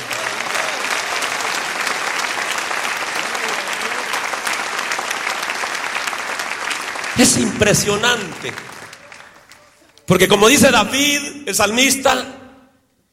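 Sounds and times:
audience applauding: 0.0s - 10.4s
speech: 7.2s - 8.7s, 10.1s - 12.4s.

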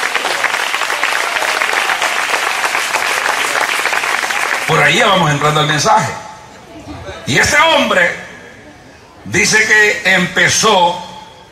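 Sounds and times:
audience applause: 0.0s - 4.9s
speech: 4.7s - 6.2s, 7.3s - 8.2s, 9.3s - 11.0s.

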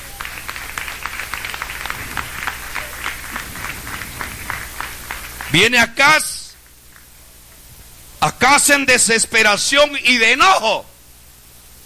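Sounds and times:
audience clapping hands: 0.0s - 7.6s
speech: 5.5s - 6.4s, 8.2s - 10.9s.

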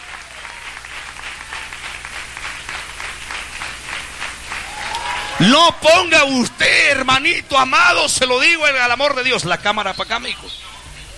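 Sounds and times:
audience clapping: 0.0s - 7.4s
speech: 5.4s - 10.6s.

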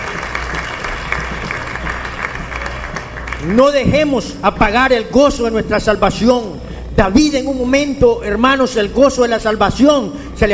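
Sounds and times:
audience clapping hands: 0.0s - 4.3s
speech: 3.4s - 10.5s.

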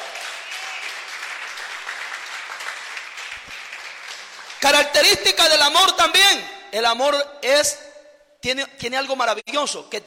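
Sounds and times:
audience applauding: 0.0s - 4.8s
speech: 4.6s - 10.0s.

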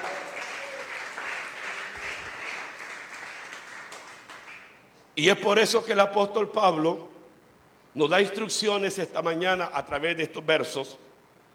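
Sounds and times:
audience clapping hands: 0.0s - 4.9s
speech: 5.2s - 7.1s, 8.0s - 11.1s.

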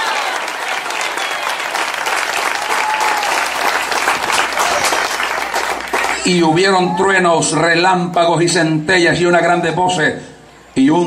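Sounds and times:
audience applause: 0.0s - 7.0s
speech: 6.3s - 11.0s.

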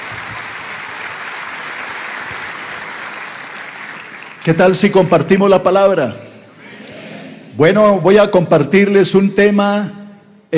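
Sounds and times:
crowd welcoming applause: 0.0s - 5.7s
speech: 4.4s - 6.2s, 7.6s - 10.5s.

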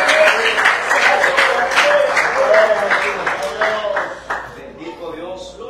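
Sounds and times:
half-hearted scattered clapping: 0.0s - 4.6s.

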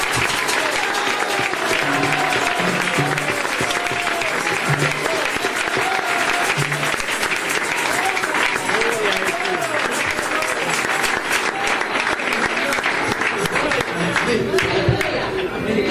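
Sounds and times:
audience applause: 0.0s - 15.8s.

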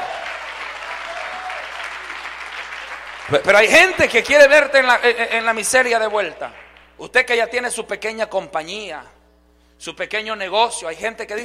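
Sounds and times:
audience applause: 0.0s - 4.1s
speech: 3.3s - 9.2s, 9.8s - 11.4s.

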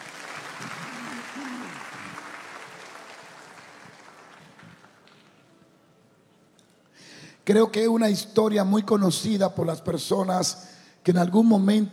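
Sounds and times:
audience applause: 0.0s - 5.4s
speech: 7.5s - 11.9s.

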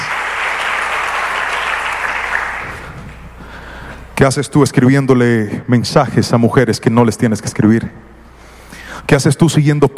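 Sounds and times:
audience applause: 0.0s - 2.9s
speech: 4.2s - 8.1s, 9.1s - 9.9s.

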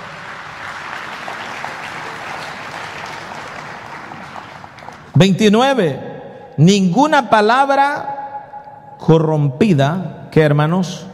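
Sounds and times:
audience clapping hands: 0.0s - 5.2s
speech: 5.2s - 6.0s, 6.6s - 8.1s, 9.0s - 11.1s.

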